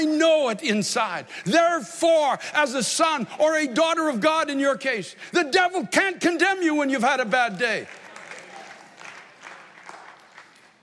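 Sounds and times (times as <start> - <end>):
speech: 0.0 - 8.0
audience clapping: 7.2 - 10.8.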